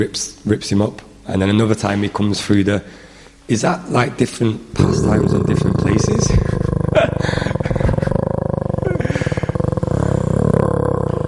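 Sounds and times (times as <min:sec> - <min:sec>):
speech: 0:00.0 - 0:06.5
person imitating animal growl: 0:04.8 - 0:11.2.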